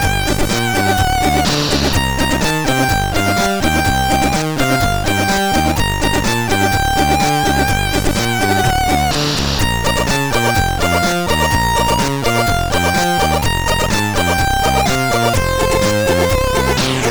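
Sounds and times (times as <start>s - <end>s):
synth beat from a CSG8580R5 sound chip: 0.0s - 17.0s.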